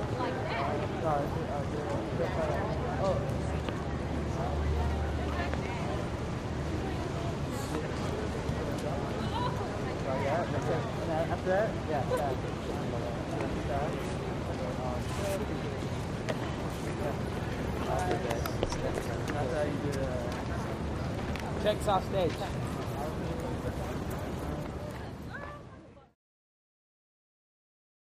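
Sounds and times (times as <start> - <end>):
high school crowd walla outdoors: 0.0 - 26.2.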